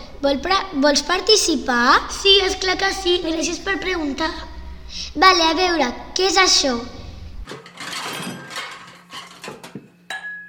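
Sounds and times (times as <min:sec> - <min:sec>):
speech: 0:00.2 - 0:04.5, 0:05.2 - 0:07.6
glass bottle falling on the floor: 0:07.5 - 0:10.4.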